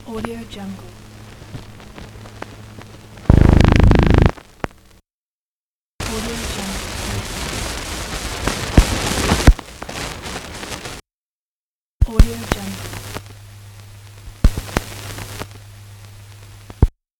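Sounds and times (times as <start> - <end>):
glitch noise: 0.0 - 4.5, 6.0 - 11.0.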